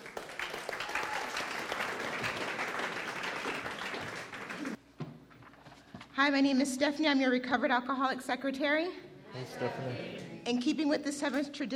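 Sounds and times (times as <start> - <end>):
audience applause at a group meeting: 0.0 - 4.8
speech: 6.2 - 11.7.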